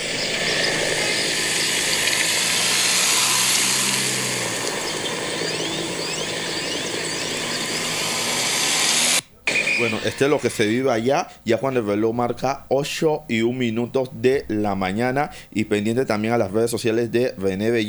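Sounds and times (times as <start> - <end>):
helicopters flying over the prison system: 0.0 - 9.2
speech: 9.8 - 17.8.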